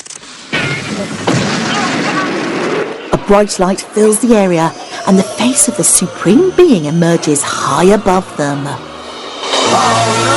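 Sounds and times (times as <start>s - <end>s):
explosions of a figure bursting apart: 0.5s - 3.3s
speech: 1.0s - 1.3s, 3.3s - 8.9s, 9.7s - 10.3s.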